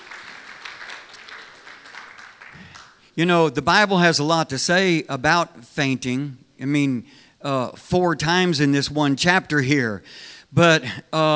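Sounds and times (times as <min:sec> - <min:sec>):
audience clapping hands: 0:00.0 - 0:03.2
speech: 0:03.2 - 0:11.3.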